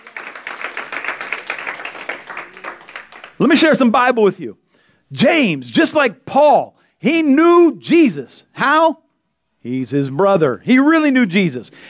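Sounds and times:
crowd clapping: 0:00.0 - 0:03.8
speech: 0:03.4 - 0:09.0, 0:09.6 - 0:11.8.

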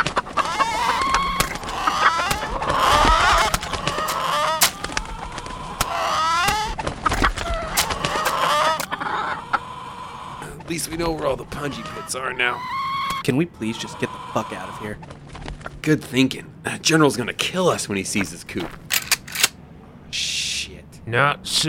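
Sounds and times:
chickens clucking as they escape: 0:00.0 - 0:15.8
speech: 0:10.9 - 0:15.2, 0:15.9 - 0:18.8, 0:21.1 - 0:21.6.

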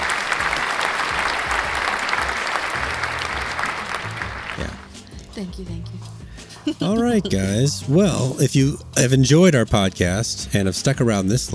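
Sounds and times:
crowd applause sound effect: 0:00.0 - 0:05.0
speech: 0:05.4 - 0:11.5.

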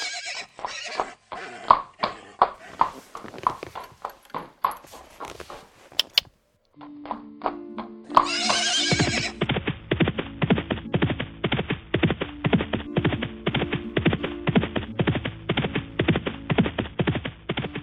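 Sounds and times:
horse whinnying: 0:00.0 - 0:02.8, 0:08.2 - 0:09.4
hooves clip-clopping: 0:00.6 - 0:06.3, 0:08.2 - 0:17.8.

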